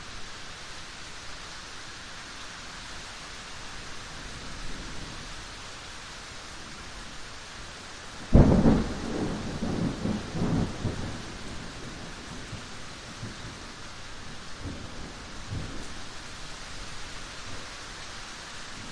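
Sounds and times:
medium rain: 0.0 - 18.9
distant thunder rumbles: 8.3 - 13.4.

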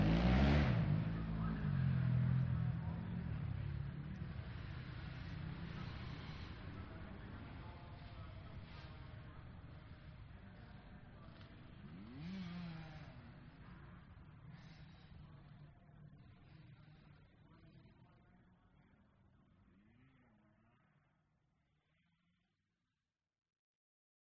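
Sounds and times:
motocross race motorcycles passing: 0.0 - 18.1.

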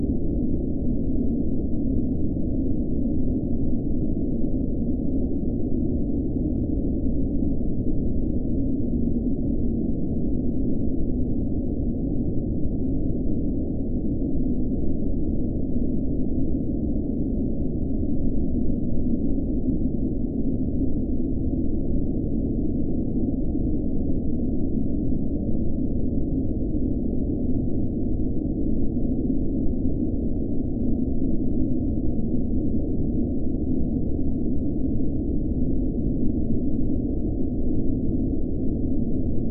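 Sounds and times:
cold blizzard wind constant droning: 0.0 - 39.4.

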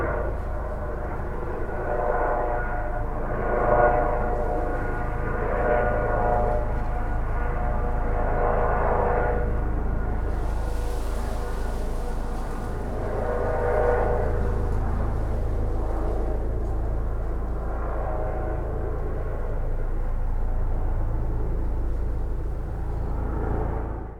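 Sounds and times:
police transport helicopter flying overhead searching: 0.0 - 24.1.

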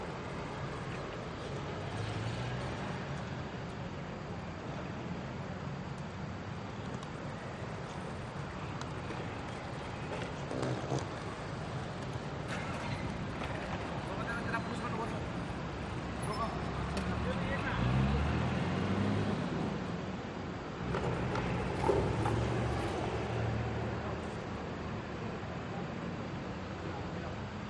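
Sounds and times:
cars passing at an airport pick up area: 0.0 - 5.3, 6.5 - 27.6.

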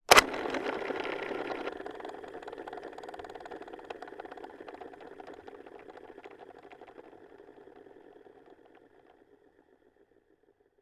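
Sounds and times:
plastic toy lever pull: 0.0 - 1.8
plastic toy disc spinning: 0.0 - 10.6.

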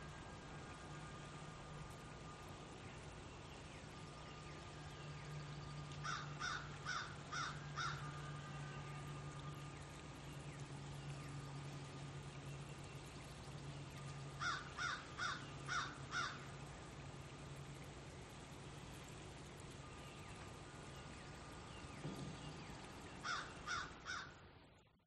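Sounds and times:
stream flowing by a campsite at sunrise: 0.0 - 25.0.

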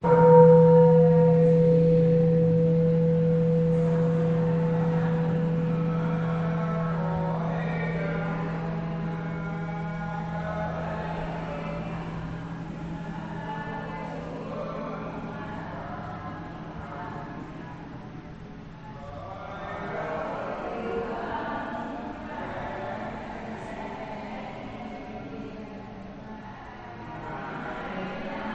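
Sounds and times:
Caodaism church bell in Vietnam: 0.0 - 11.8
people praying in a Caodaism church in Vietnam: 0.0 - 28.5.

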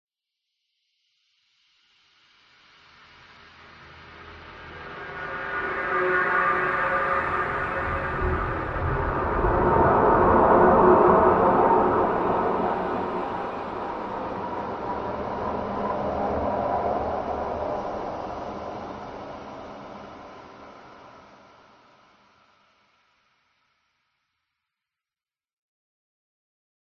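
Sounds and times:
paranormal horror tension swell wash: 3.7 - 22.6.

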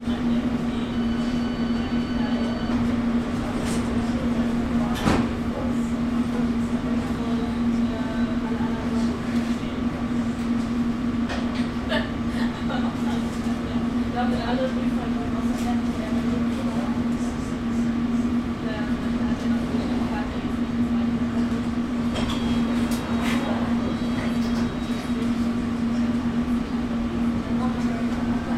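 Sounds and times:
London Underground train idling at station: 0.0 - 28.5
people at London Underground station: 0.1 - 10.8, 11.4 - 28.5.

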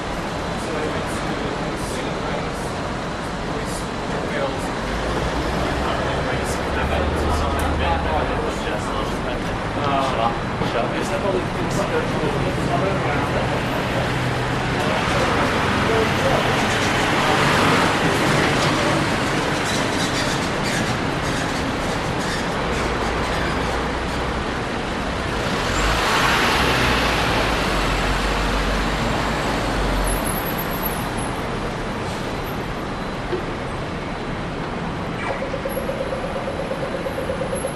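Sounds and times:
close traffic passing in north CBD Sydney: 0.0 - 37.7
pedestrian crossing beeps in north CBD Sydney: 35.0 - 37.7.

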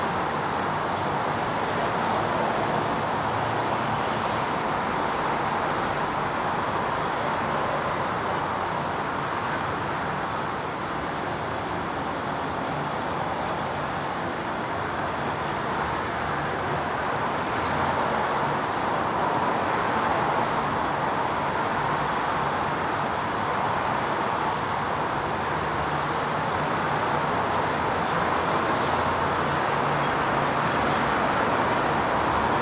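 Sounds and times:
city ambience from a rooftop: 0.0 - 32.5.

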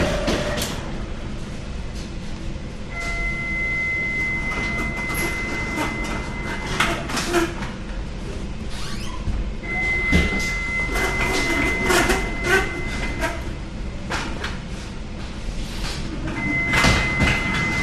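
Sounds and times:
bakers working in a German bakery: 0.0 - 17.8
loud beeping in a German bakery: 2.9 - 7.0, 9.6 - 13.3.

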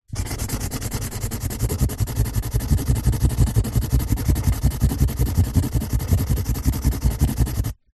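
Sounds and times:
office felt tip pen scribbling out on empty cardboard box: 0.0 - 7.9.

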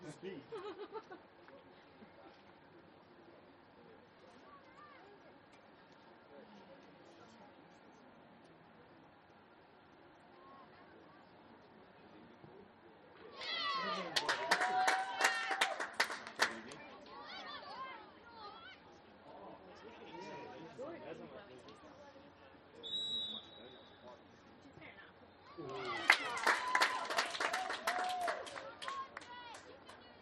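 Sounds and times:
laughter: 0.5 - 1.4
parents and children cheering at a school soccer game: 13.3 - 17.6, 25.5 - 29.7
parents and children clapping at a school soccer game: 13.8 - 16.9, 25.6 - 30.1.

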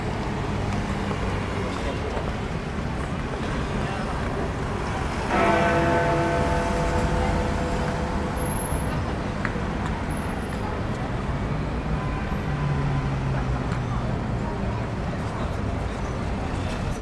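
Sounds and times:
people in London: 0.0 - 17.0
traffic in London: 0.0 - 17.0
Big Ben clock bell chiming one o'clock in London: 5.3 - 10.8.

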